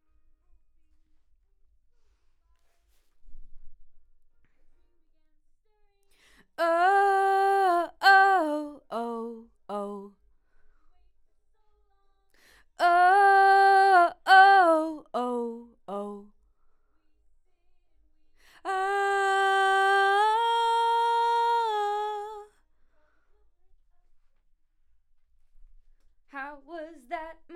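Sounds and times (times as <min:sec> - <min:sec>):
vocal: 0:06.6 - 0:10.1, 0:12.8 - 0:16.3, 0:18.5 - 0:22.5.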